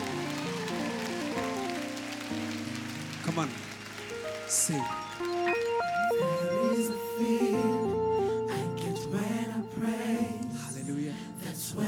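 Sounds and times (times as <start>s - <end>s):
crowd clapping in praise: 0.0s - 7.6s
keyboard melody: 0.0s - 11.8s
speech: 3.4s - 3.7s, 4.5s - 6.3s.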